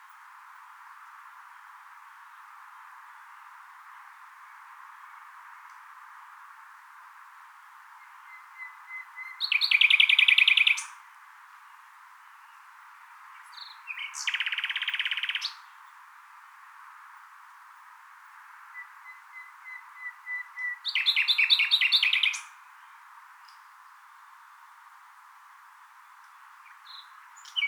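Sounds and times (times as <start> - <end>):
common nightingale song: 7.6 - 16.0, 18.7 - 24.9, 25.8 - 27.6.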